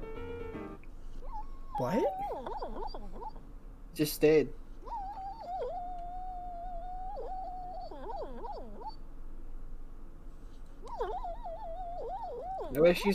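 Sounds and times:
dog whimpering while dreaming: 0:01.1 - 0:03.4, 0:04.8 - 0:09.0, 0:10.8 - 0:13.1
speech: 0:01.8 - 0:04.6, 0:12.8 - 0:13.1.

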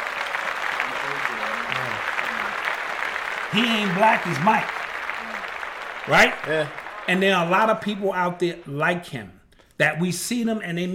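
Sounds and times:
clapping: 0:00.0 - 0:08.4
speech: 0:03.5 - 0:04.8, 0:06.1 - 0:10.9.

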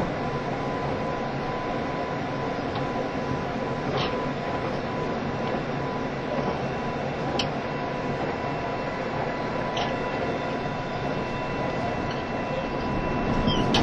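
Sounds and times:
faint steady whine: 0:00.0 - 0:13.8
train rumbling: 0:00.0 - 0:13.8.

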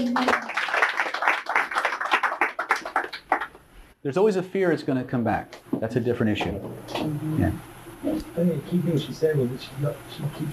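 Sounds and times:
speech: 0:00.0 - 0:00.6, 0:04.0 - 0:10.5
audience applause: 0:00.0 - 0:03.6.

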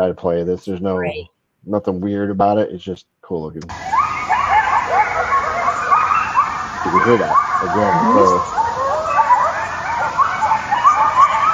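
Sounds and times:
speech: 0:00.0 - 0:04.0, 0:06.8 - 0:08.6
dogs barking: 0:03.7 - 0:11.5.

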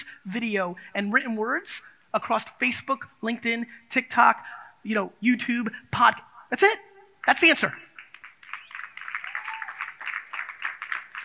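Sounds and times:
speech: 0:00.2 - 0:07.8
smattering of audience claps: 0:07.2 - 0:11.2.

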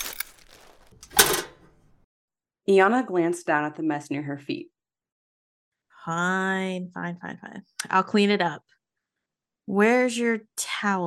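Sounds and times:
broken glass pieces dropped into garbage: 0:00.0 - 0:01.8
speech: 0:02.7 - 0:04.7, 0:06.0 - 0:08.8, 0:09.7 - 0:11.0.

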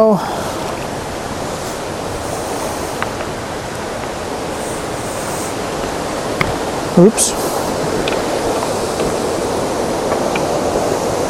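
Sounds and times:
speech: 0:00.0 - 0:00.5, 0:07.0 - 0:07.4
rain starting to fall: 0:00.0 - 0:11.2.

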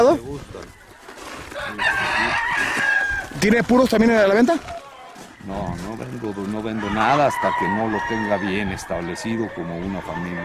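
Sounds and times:
speech: 0:00.0 - 0:00.8, 0:01.5 - 0:02.8, 0:03.4 - 0:04.8, 0:05.4 - 0:10.4
rooster crowing: 0:01.5 - 0:03.4, 0:04.8 - 0:10.4.

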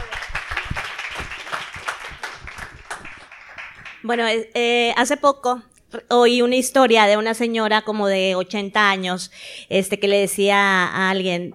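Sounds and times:
audience applause: 0:00.0 - 0:04.0
speech: 0:04.0 - 0:11.5.

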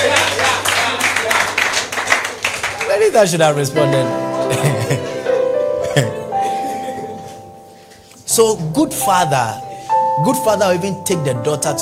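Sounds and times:
audience clapping: 0:00.0 - 0:03.3
speech: 0:03.1 - 0:05.0, 0:06.0 - 0:06.2, 0:08.4 - 0:11.8
laughter: 0:04.3 - 0:07.4.

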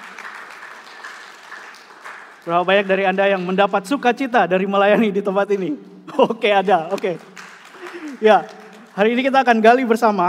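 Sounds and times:
audience applause: 0:00.0 - 0:03.6, 0:06.6 - 0:09.6
speech: 0:02.4 - 0:07.3, 0:08.2 - 0:10.2.

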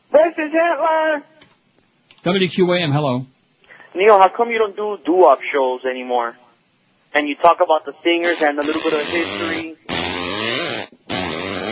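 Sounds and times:
speech: 0:00.4 - 0:01.4, 0:02.2 - 0:06.4, 0:07.1 - 0:09.8
breath between raspberries: 0:03.6 - 0:04.0
buzzing mouth raspberry: 0:08.2 - 0:11.7.

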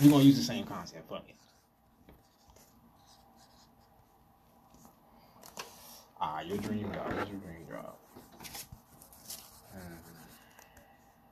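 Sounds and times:
speech: 0:00.0 - 0:01.5, 0:06.2 - 0:08.0
pen scratching on paper: 0:01.3 - 0:04.0, 0:06.6 - 0:10.8.

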